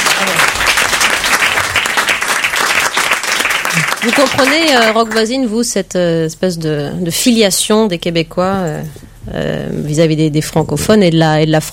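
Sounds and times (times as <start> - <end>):
audience applause: 0.0 - 5.1
speech: 4.0 - 11.7.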